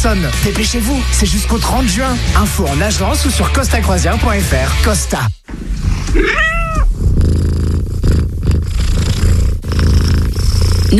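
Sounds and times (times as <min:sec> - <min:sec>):
speech: 0:00.0 - 0:06.6
cat purring: 0:05.5 - 0:10.9.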